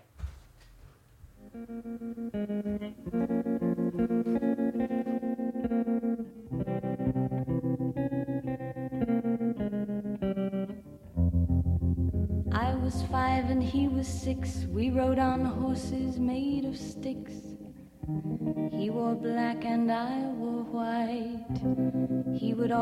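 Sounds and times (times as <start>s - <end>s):
effect-laden electric guitar playing slow sustained chords: 1.4s - 22.7s
speech: 1.5s - 3.4s, 13.1s - 17.5s, 18.1s - 22.7s
low bass: 11.2s - 17.0s.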